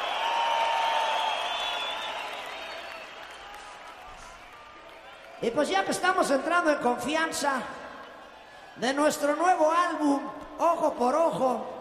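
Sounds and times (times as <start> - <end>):
audience applause: 0.0 - 5.5
speech: 5.4 - 7.8, 8.8 - 11.7.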